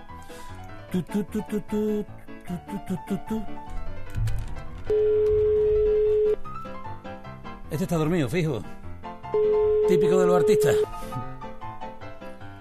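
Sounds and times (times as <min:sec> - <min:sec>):
speech: 0:00.9 - 0:04.3, 0:07.7 - 0:11.0
telephone ringback tone while the caller waits for an answer: 0:04.9 - 0:06.4, 0:09.3 - 0:11.0.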